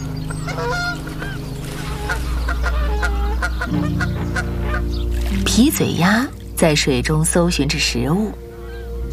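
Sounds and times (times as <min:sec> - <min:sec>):
whooper swans honking on a lake: 0:00.0 - 0:06.3
speech: 0:05.6 - 0:08.4.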